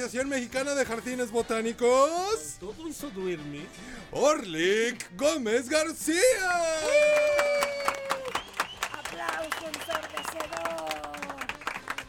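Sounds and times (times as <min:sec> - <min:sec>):
speech: 0:00.0 - 0:07.4
live applause from pupils of the Simón Bolívar school: 0:06.7 - 0:12.0.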